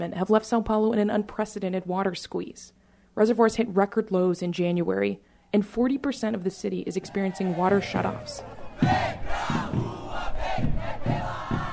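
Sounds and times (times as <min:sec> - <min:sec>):
speech: 0:00.0 - 0:10.0
protest crowd chanting in downtown Sao Paulo: 0:06.9 - 0:11.7.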